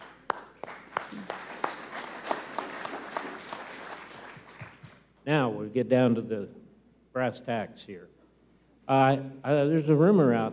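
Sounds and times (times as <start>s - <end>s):
audience applause: 0.0s - 5.0s
speech: 5.3s - 6.6s, 7.2s - 8.2s, 8.9s - 10.5s.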